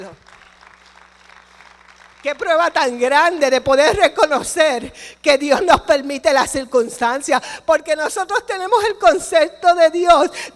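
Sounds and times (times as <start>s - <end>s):
speech: 0.0s - 0.4s, 2.2s - 10.5s
audience applause: 0.0s - 2.5s.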